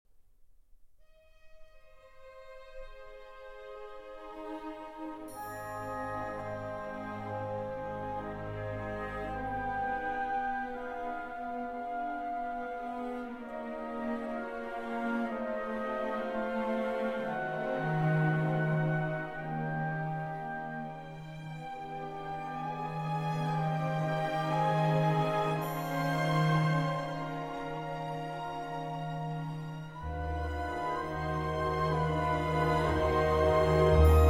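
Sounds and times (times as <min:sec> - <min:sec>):
trumpet concerto slow movement: 0:02.8 - 0:34.2.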